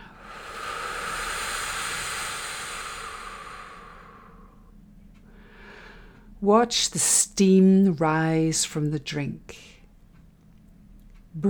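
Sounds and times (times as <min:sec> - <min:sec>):
exhaling through pursed lips: 0:00.0 - 0:04.7
speech: 0:06.4 - 0:09.7.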